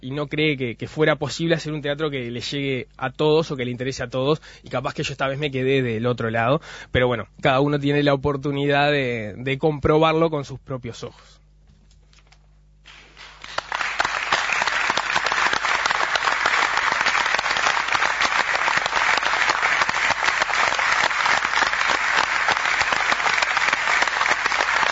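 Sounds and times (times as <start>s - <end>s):
speech: 0.0s - 11.4s
applause: 12.8s - 24.9s.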